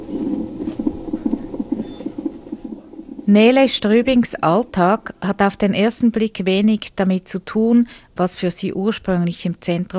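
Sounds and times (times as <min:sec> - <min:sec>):
fetal heartbeat on a monitor: 0:00.0 - 0:05.4
low hiss: 0:00.0 - 0:09.9
speech: 0:03.3 - 0:09.9.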